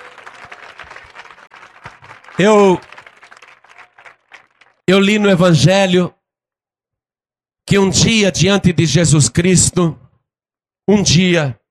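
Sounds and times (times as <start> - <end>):
audience applauding: 0.0 - 4.9
speech: 2.4 - 2.9, 4.9 - 6.2, 7.7 - 10.0, 10.9 - 11.6.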